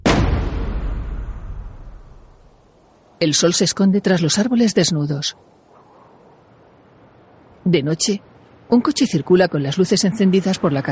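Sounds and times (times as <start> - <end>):
basement door slamming shut: 0.0 - 1.8
speech: 3.2 - 5.6, 7.7 - 10.9.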